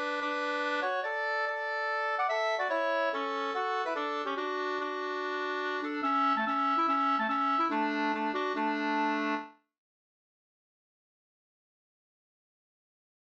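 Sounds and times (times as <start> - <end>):
reinlender folk dance music: 0.0 - 9.5.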